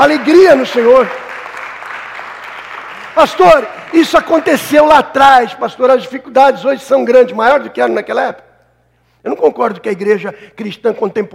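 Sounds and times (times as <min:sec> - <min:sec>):
speech: 0:00.0 - 0:01.2, 0:03.2 - 0:08.4, 0:09.2 - 0:11.3
audience applauding: 0:00.0 - 0:04.9.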